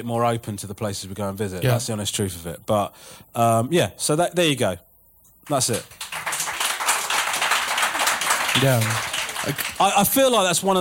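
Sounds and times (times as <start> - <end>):
speech: 0.0 - 6.1, 8.5 - 10.7
audience applauding: 5.7 - 10.7.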